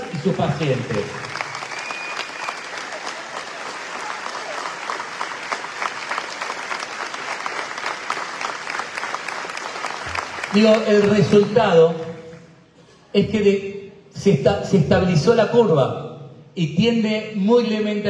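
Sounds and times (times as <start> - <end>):
crowd applauding: 0.0 - 12.5
speech: 0.2 - 1.3, 10.6 - 12.0, 13.2 - 16.0, 16.6 - 18.0.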